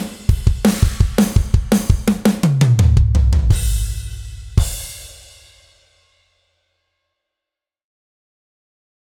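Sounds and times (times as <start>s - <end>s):
gospel drumming: 0.0s - 5.0s.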